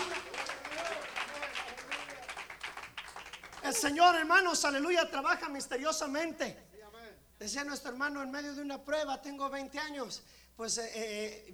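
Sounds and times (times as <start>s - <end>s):
audience clapping hands: 0.0s - 4.3s
speech: 3.6s - 6.6s, 7.4s - 11.5s.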